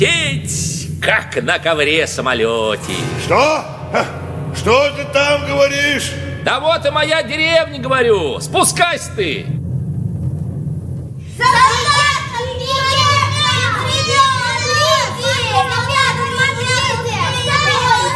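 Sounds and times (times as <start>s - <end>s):
low rumbling background: 0.0s - 18.1s
speech: 1.0s - 9.6s
children shouting while running: 11.3s - 18.1s.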